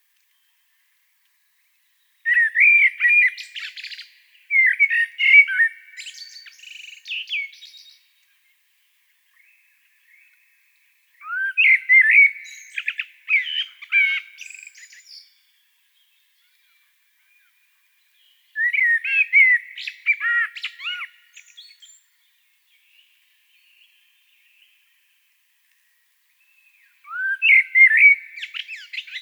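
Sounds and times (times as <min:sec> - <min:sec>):
common blackbird singing: 0:02.3 - 0:08.0, 0:11.2 - 0:24.8, 0:26.5 - 0:29.1.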